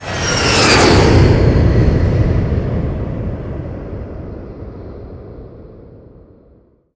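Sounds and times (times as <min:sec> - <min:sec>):
jet flying by: 0:00.0 - 0:04.8.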